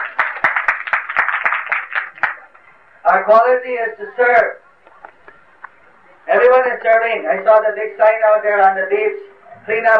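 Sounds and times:
loud applause: 0:00.0 - 0:02.6
speech: 0:03.1 - 0:04.6, 0:06.3 - 0:09.9.

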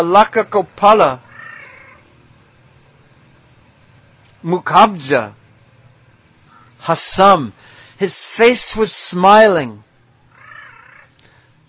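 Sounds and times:
speech: 0:00.0 - 0:01.2, 0:04.4 - 0:05.4, 0:06.8 - 0:09.9
crow making a gentle call: 0:01.3 - 0:02.0, 0:10.3 - 0:11.2.

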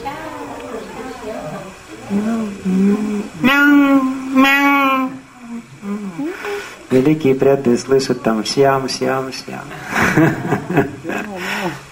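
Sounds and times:
speech: 0:01.2 - 0:03.8, 0:07.0 - 0:11.0
human voice imitating peacock calls: 0:02.1 - 0:06.7
laughter: 0:09.7 - 0:11.9.

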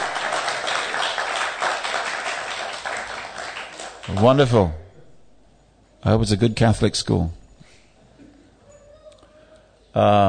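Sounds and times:
audience applause: 0:00.0 - 0:04.4
speech: 0:04.1 - 0:04.8, 0:06.0 - 0:07.4, 0:10.0 - 0:10.2.

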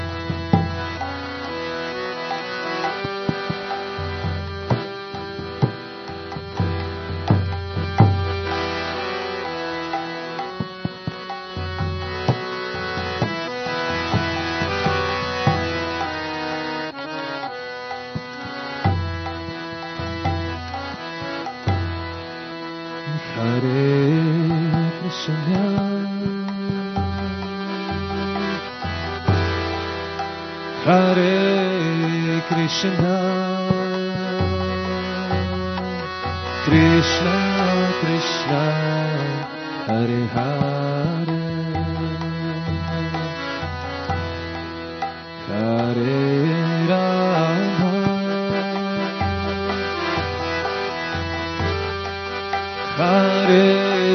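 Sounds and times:
kirtan devotional chanting: 0:00.0 - 0:54.1.

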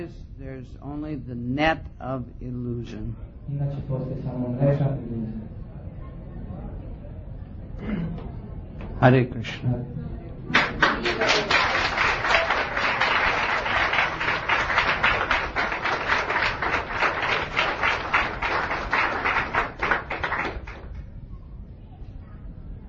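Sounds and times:
speech: 0:00.0 - 0:05.6, 0:07.8 - 0:08.3, 0:09.0 - 0:11.4
audience applause: 0:10.5 - 0:21.1.

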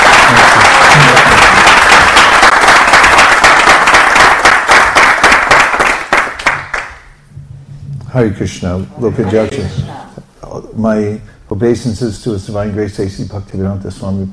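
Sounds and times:
audience applause: 0:00.0 - 0:07.0
speech: 0:08.2 - 0:10.0, 0:10.8 - 0:14.3.

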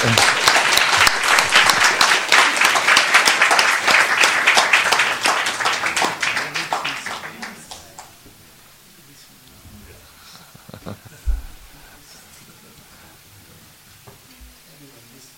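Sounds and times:
massive audience applause greeting a magician: 0:00.0 - 0:08.2.

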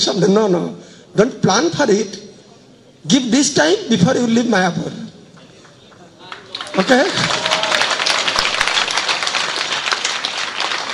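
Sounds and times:
speech: 0:00.0 - 0:02.2, 0:03.0 - 0:05.0, 0:06.8 - 0:07.4
audience clapping: 0:05.4 - 0:10.9.

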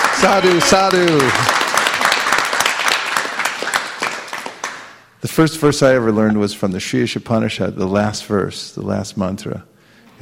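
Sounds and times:
audience applauding at a devotional class: 0:00.0 - 0:05.0
speech: 0:00.2 - 0:01.5, 0:05.2 - 0:09.7.

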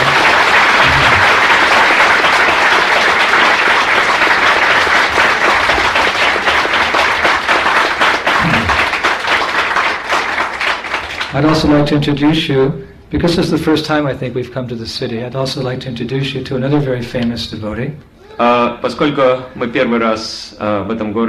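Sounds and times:
audience applause: 0:00.0 - 0:11.5
speech: 0:11.4 - 0:21.2.

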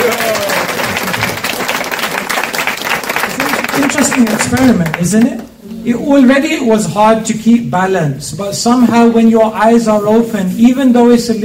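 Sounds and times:
audience applause: 0:00.0 - 0:05.3
speech: 0:04.2 - 0:11.4.

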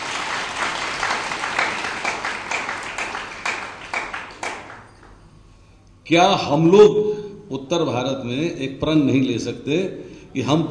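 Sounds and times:
audience applause: 0:00.0 - 0:05.3
speech: 0:06.1 - 0:10.6.

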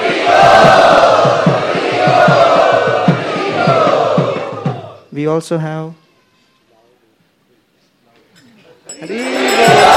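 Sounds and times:
large crowd chanting in welcome at a gathering at Chowpatty: 0:00.0 - 0:05.1, 0:09.0 - 0:09.9
speech: 0:05.2 - 0:06.0.

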